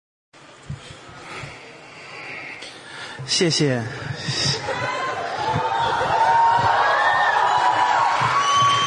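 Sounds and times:
speech: 0:03.2 - 0:04.4
audience applause and cheering: 0:04.4 - 0:08.8.

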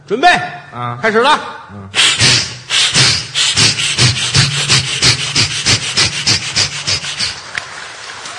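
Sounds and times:
speech: 0:00.1 - 0:02.4
voice imitating a saw cutting wood: 0:01.9 - 0:07.4.

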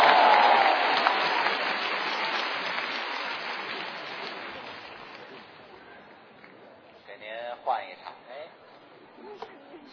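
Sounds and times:
audience applause: 0:00.0 - 0:05.6.

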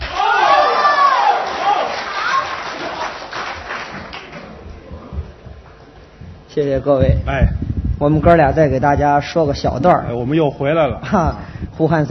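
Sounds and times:
audience clapping and cheering: 0:00.0 - 0:04.8
speech: 0:06.6 - 0:12.0.

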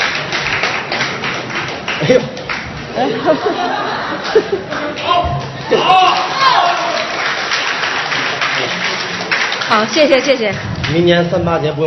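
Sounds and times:
audience applause at a crosstalk comedy show: 0:00.0 - 0:11.2
laughter: 0:02.0 - 0:07.1
speech: 0:02.1 - 0:02.4, 0:03.0 - 0:06.7, 0:09.7 - 0:11.8.

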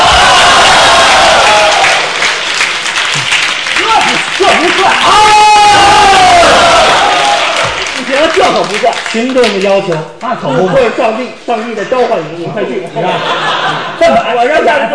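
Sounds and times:
audience cheering: 0:00.0 - 0:08.9
audience clapping: 0:00.0 - 0:10.4
speech: 0:09.2 - 0:13.4
laughter: 0:10.2 - 0:14.9.

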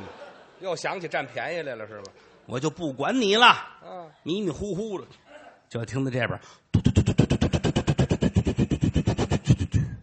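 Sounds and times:
speech: 0:00.6 - 0:07.4
voice imitating an airplane engine: 0:06.8 - 0:10.0.

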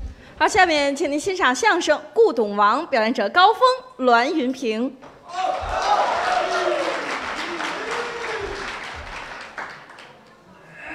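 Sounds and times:
speech: 0:00.4 - 0:05.7
scattered cheers and vocal whoops: 0:05.3 - 0:09.0
large audience applause: 0:05.3 - 0:10.4.

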